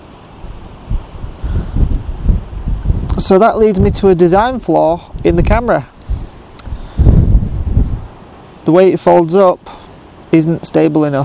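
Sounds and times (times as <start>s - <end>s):
wind buffeting a microphone outdoors during a camera shoot: 0.4s - 8.2s
speech: 3.3s - 5.9s, 8.7s - 11.2s.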